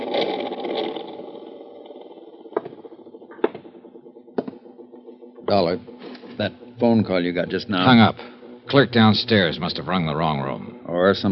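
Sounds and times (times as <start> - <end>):
overhead ceiling fan motor whirring: 0.0 - 11.3
speech: 5.5 - 11.3.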